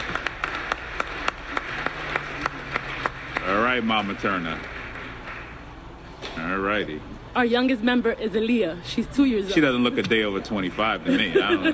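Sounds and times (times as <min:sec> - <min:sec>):
audience clapping: 0:00.0 - 0:05.9
low hum: 0:00.0 - 0:11.7
speech: 0:03.8 - 0:04.8, 0:06.4 - 0:11.7
laughter: 0:10.9 - 0:11.7.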